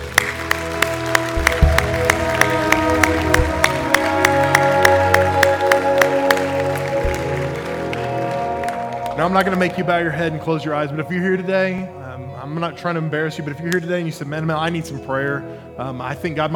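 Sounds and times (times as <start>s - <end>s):
audience applause: 0.0s - 10.1s
speech: 9.2s - 16.5s.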